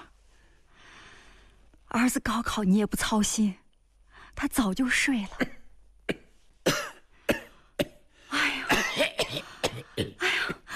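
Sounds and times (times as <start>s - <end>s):
speech: 2.0s - 3.6s, 4.4s - 6.2s
harsh wet raspy coughing fit: 6.1s - 8.0s, 8.7s - 10.7s.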